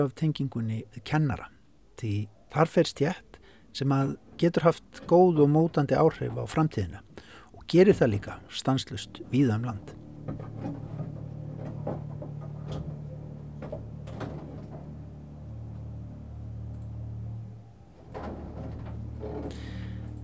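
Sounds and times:
speech: 0.0s - 10.9s
construction work on the upper floor: 3.5s - 15.9s, 16.7s - 20.2s.

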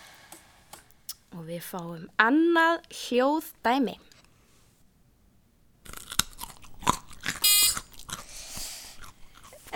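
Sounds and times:
speech: 1.4s - 4.1s
crunching on a raw carrot: 5.8s - 9.7s.

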